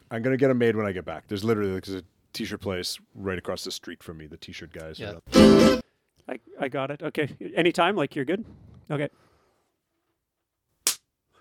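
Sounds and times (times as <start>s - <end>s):
speech: 0.1s - 9.3s
single hand clap: 10.8s - 11.1s.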